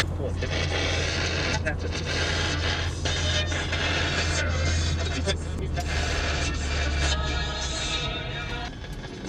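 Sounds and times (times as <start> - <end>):
radio: 0.0 - 9.2.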